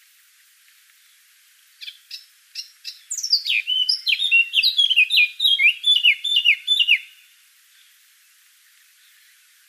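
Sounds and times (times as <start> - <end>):
Eurasian blackcap Sylvia atricapilla singing chattering phrases: 2.8 - 7.2.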